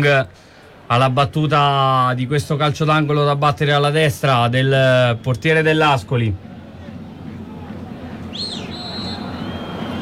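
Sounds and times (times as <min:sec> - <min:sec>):
speech: 0:00.0 - 0:06.5
crowd noise rumble: 0:00.0 - 0:09.9
referee's whistle: 0:04.8 - 0:05.9, 0:08.3 - 0:09.9.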